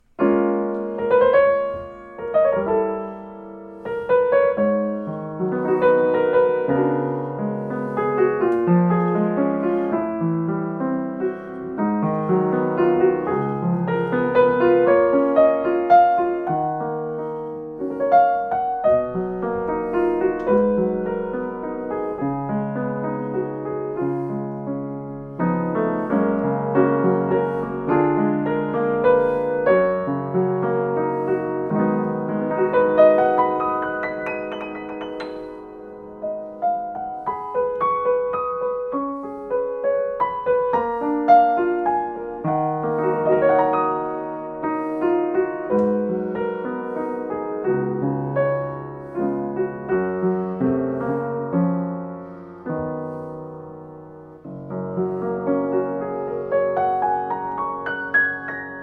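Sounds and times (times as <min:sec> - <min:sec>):
Kawai US 55 piano: 0:00.0 - 0:58.8.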